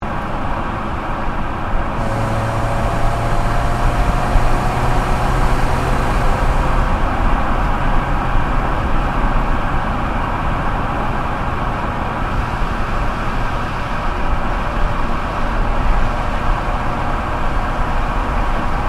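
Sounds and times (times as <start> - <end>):
Ford Focus exhaust while cruising: 0.0 - 18.8.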